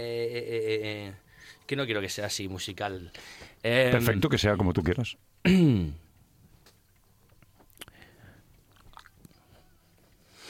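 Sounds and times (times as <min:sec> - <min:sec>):
speech: 0:00.0 - 0:06.0
faint chewing during an interview: 0:06.0 - 0:10.4.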